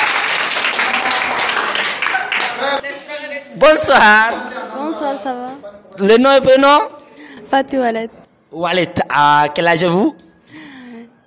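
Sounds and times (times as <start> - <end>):
audience applause: 0.0 - 2.8
speech: 3.6 - 10.3.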